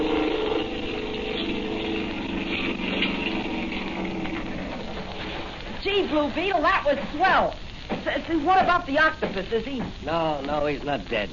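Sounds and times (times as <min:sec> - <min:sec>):
boat motor starting and running: 0:00.0 - 0:05.7
speech: 0:06.1 - 0:11.3.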